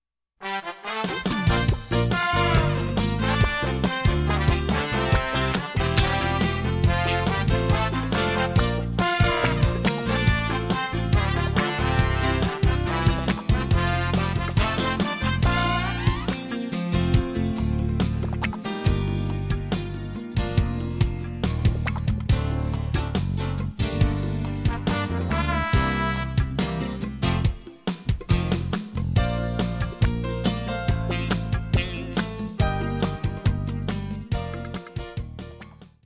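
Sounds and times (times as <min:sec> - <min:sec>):
instrumental music without backing vocals: 0:00.4 - 0:36.0.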